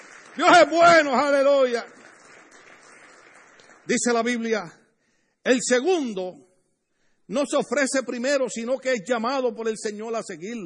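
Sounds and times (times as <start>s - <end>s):
audience applause: 0.0s - 4.0s
speech: 0.4s - 2.0s, 3.9s - 4.8s, 5.5s - 6.5s, 7.3s - 10.6s.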